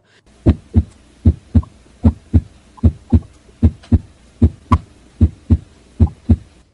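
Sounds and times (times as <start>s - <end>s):
normal heartbeat lub-dub: 0.4s - 6.6s.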